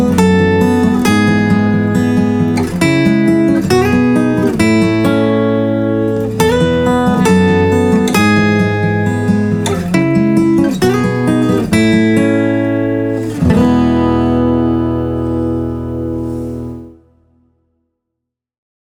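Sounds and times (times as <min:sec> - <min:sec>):
background music: 0:00.0 - 0:17.4.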